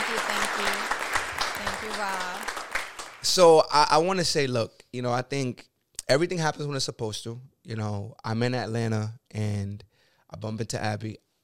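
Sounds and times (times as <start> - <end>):
voices calling out and cheering: 0.0 - 2.6
audience clapping: 0.0 - 3.6
speech: 1.8 - 2.5, 3.2 - 11.2.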